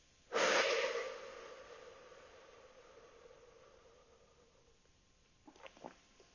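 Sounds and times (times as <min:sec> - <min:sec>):
slow breathing in through the nose and out through the mouth: 0:00.3 - 0:04.8.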